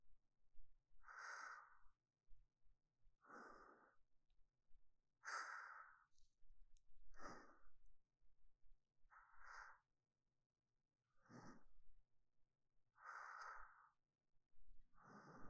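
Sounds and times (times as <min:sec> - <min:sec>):
sleeping breath: 0:01.0 - 0:01.9, 0:03.2 - 0:04.0, 0:05.2 - 0:06.1, 0:07.2 - 0:07.7, 0:09.1 - 0:09.8, 0:11.2 - 0:11.7, 0:13.0 - 0:14.0, 0:15.0 - 0:15.4.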